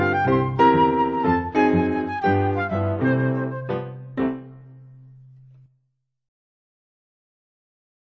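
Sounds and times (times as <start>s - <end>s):
chamber music trio playing blues: 0.0s - 4.5s.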